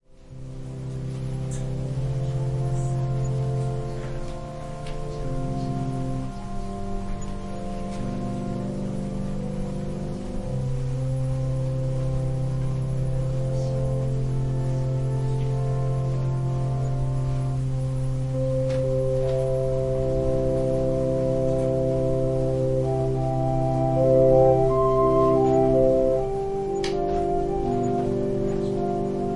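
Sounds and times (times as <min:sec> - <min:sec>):
organ prelude: 0:00.2 - 0:29.3.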